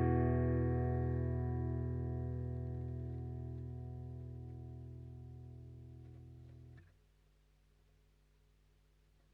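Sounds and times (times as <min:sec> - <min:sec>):
Gibson J-45 acoustic guitar: 0:00.0 - 0:06.8.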